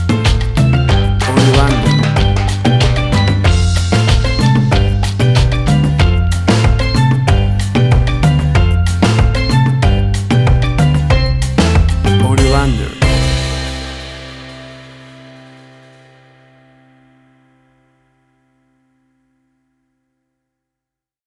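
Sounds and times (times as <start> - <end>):
bouncy calypso beat: 0.0 - 16.2.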